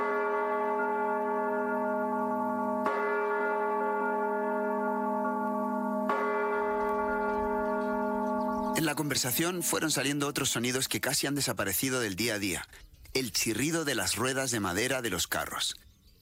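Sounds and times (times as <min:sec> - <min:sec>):
church bells ringing: 0:00.0 - 0:11.5
speech: 0:08.8 - 0:15.8.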